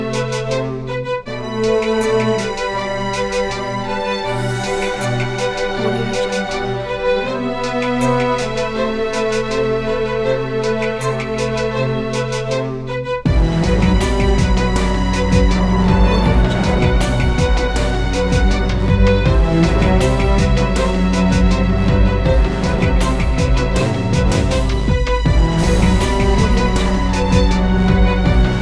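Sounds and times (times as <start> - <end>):
eerie cinematic horror music: 0.0 - 28.5.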